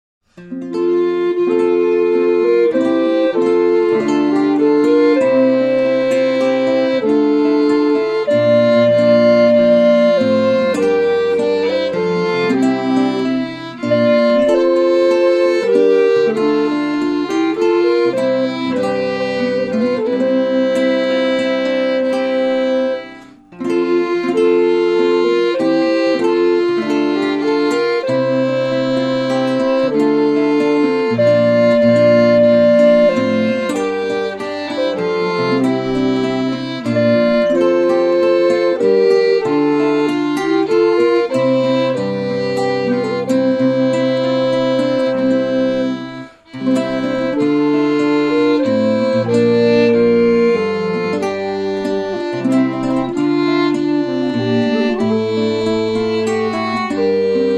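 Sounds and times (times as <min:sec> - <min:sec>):
baroque dance piece: 0:00.4 - 0:57.5.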